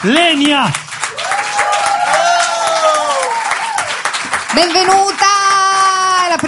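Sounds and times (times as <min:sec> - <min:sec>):
speech: 0:00.0 - 0:00.8, 0:04.6 - 0:05.3
audience applause: 0:00.0 - 0:06.4.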